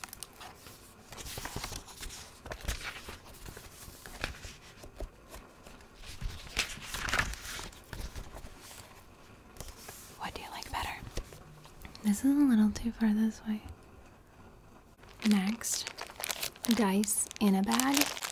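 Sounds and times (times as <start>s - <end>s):
notebook pages turning: 0.3s - 8.9s, 15.0s - 16.8s, 17.7s - 18.3s
speech: 12.1s - 13.7s, 15.3s - 15.9s, 16.7s - 18.2s.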